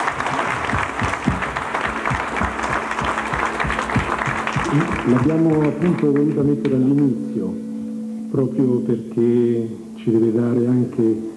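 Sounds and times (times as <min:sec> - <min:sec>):
audience applause: 0:00.0 - 0:07.0
speech: 0:04.7 - 0:07.6, 0:08.3 - 0:11.3.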